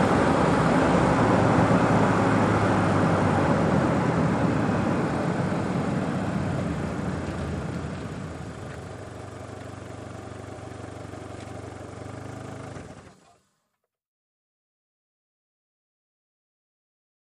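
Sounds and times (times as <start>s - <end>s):
sedan driving at 55 to 65 mph: 0.0s - 13.2s.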